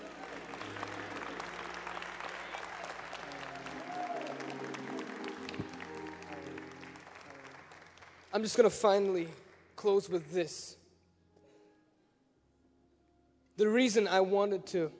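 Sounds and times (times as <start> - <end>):
audience clapping: 0.0 - 10.4
speech: 8.4 - 10.8, 13.6 - 14.9.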